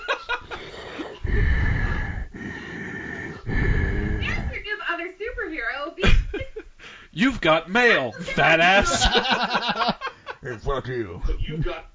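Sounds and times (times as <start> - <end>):
laughter: 0.0 - 0.7, 6.0 - 6.7, 8.7 - 10.7
voice imitating heavy rasping breathing: 0.6 - 4.7
speech: 7.2 - 11.9.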